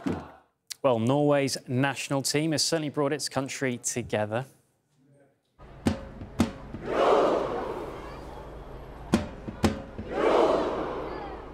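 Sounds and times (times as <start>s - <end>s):
speech: 0.8s - 4.6s
tens of thousands of football fans cheering in Oslo: 6.6s - 11.5s.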